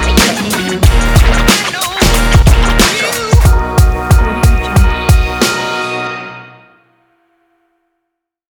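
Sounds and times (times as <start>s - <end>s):
hip hop rapping over a beat: 0.0s - 5.5s.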